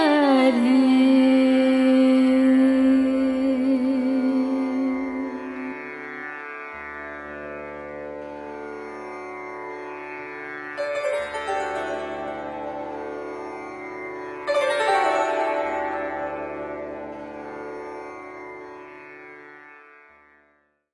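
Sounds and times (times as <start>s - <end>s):
woman chanting a mantra: 0.0s - 6.0s
sitar: 0.0s - 20.9s
tanpura drone: 0.0s - 20.9s.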